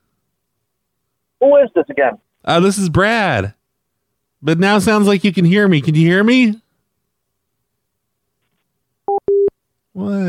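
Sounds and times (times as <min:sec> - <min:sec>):
speech: 0:01.4 - 0:03.6, 0:04.4 - 0:06.6, 0:10.0 - 0:10.2
telephone busy signal after hang-up: 0:09.1 - 0:09.5.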